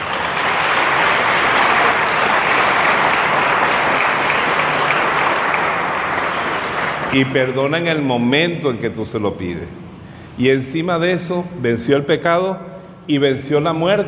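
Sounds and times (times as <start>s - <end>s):
audience applause: 0.0s - 7.4s
speech: 7.1s - 9.8s, 10.4s - 14.0s.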